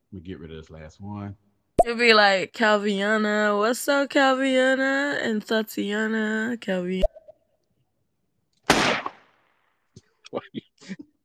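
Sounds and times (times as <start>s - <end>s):
speech: 0.1s - 7.1s, 10.3s - 11.0s
gunshot: 8.7s - 9.4s.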